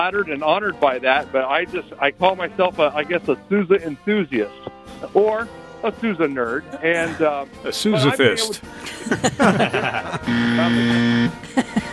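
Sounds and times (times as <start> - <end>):
speech: 0.0 - 11.9
laughter: 6.8 - 11.9
electric buzzer buzzing: 10.1 - 11.4.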